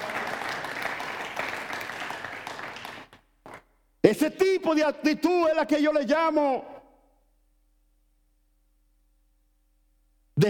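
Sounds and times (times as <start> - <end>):
applause: 0.0 - 3.8
speech: 4.1 - 6.7.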